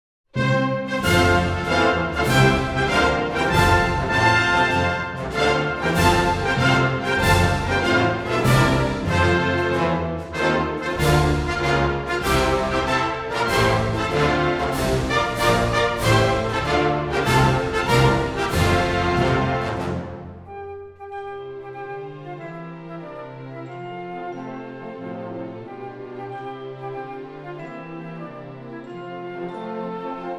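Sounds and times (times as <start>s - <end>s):
national anthem: 0.4s - 20.4s.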